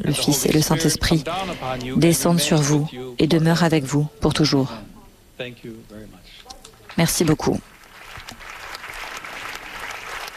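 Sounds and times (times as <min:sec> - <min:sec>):
speech: 0:00.0 - 0:06.4, 0:07.0 - 0:07.7
assembly applauding Pope Leo XIV in a packed synod hall: 0:07.8 - 0:10.3.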